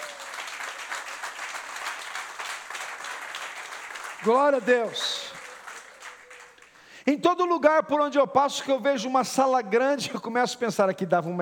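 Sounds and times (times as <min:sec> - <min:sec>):
audience applause: 0:00.0 - 0:06.8
speech: 0:04.2 - 0:05.2, 0:07.1 - 0:11.3.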